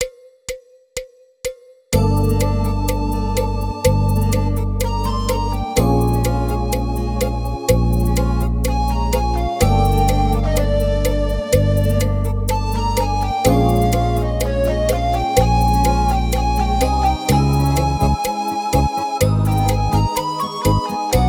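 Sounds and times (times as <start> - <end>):
ska music: 2.0 - 21.2.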